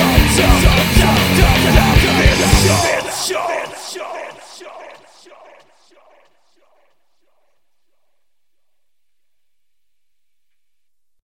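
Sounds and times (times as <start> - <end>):
techno music: 0.0 - 7.0.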